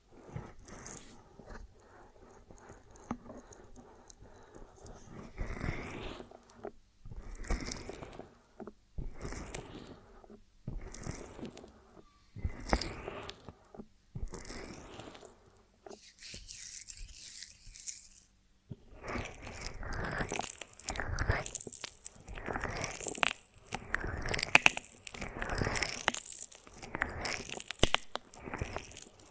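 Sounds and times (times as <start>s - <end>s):
ASMR honeycomb on branch: 0.0s - 29.2s.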